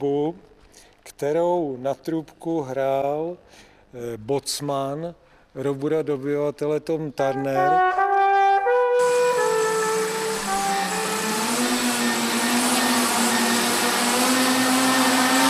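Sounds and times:
speech: 0:00.0 - 0:08.0
propellers buzzing: 0:08.9 - 0:15.4
many small electric motors whirring: 0:09.0 - 0:15.4.

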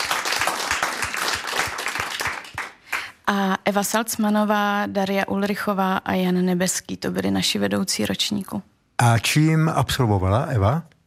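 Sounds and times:
audience applause: 0:00.0 - 0:03.1
speech: 0:03.3 - 0:10.9.

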